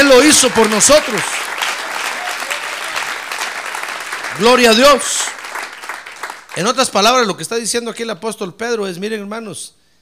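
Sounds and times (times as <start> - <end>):
audience applause: 0.0 - 6.7
speech: 0.1 - 1.5, 4.4 - 5.4, 6.6 - 9.8.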